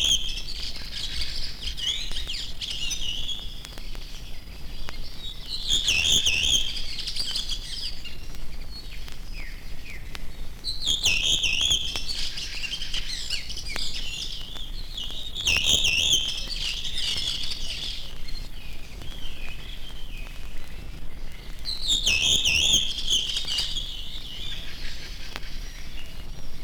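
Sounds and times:
bird voices in nature: 0.0s - 26.6s.

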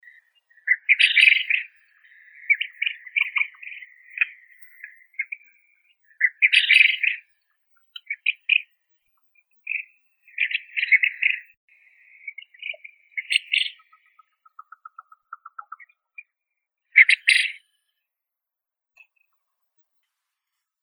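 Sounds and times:
Japanese quail Coturnix japonica calling: 0.5s - 7.2s, 9.7s - 11.5s, 12.1s - 16.0s, 17.0s - 17.6s.

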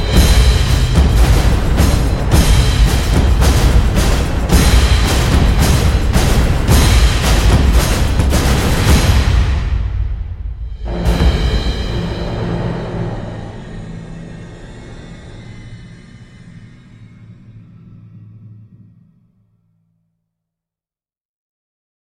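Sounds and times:
drum effects: 0.0s - 14.4s.

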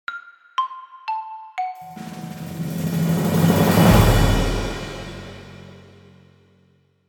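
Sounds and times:
percussion: 1.6s - 6.5s.

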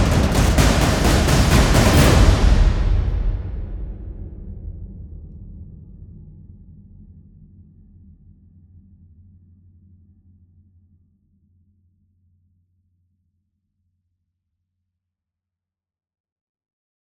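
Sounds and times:
drums: 0.0s - 5.3s.

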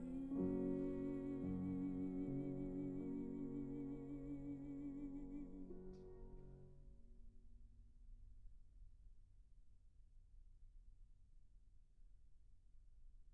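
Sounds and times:
voice singing a romance: 0.0s - 6.4s
piano: 0.0s - 7.7s.

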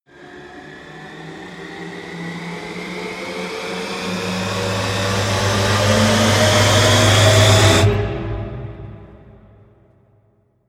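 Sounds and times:
short rising sound: 4.1s - 9.6s.

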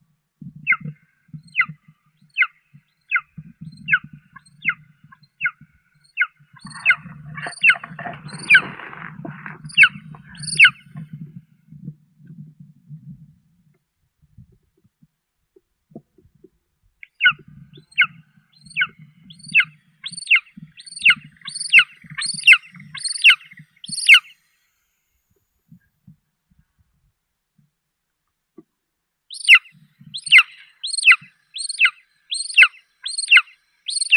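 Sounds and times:
golden eagle Aquila chrysaetos calling: 3.1s - 10.9s, 17.2s - 24.3s, 29.3s - 34.1s.

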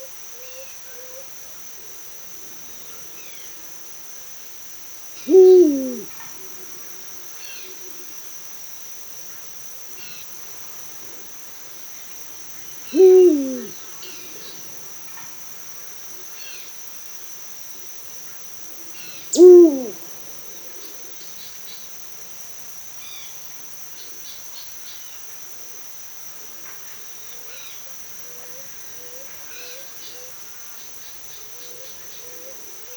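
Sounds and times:
eagle owl hooting at dusk: 5.2s - 6.2s, 12.9s - 14.2s, 19.3s - 20.0s.

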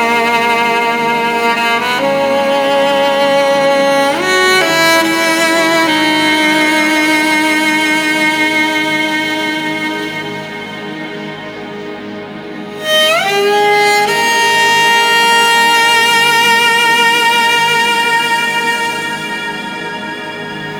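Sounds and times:
cello solo: 0.0s - 20.7s.

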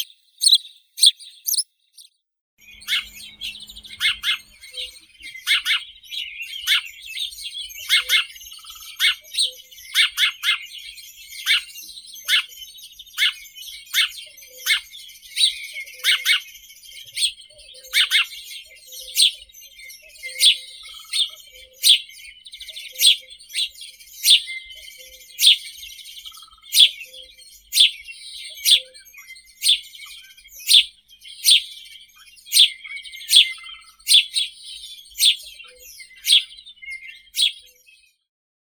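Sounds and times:
Passer domesticus house sparrows: 0.0s - 38.2s.

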